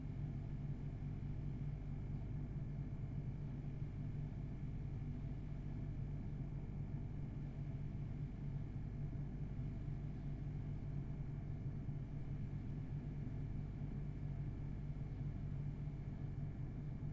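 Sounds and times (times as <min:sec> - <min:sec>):
household refrigerator sounds recorded from inside: 0:00.0 - 0:17.1.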